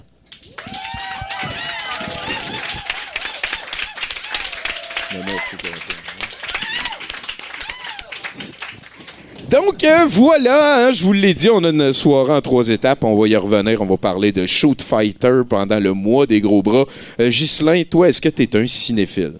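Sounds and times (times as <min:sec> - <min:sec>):
audience applause: 0:00.3 - 0:09.5
speech: 0:05.4 - 0:06.4, 0:09.6 - 0:19.3.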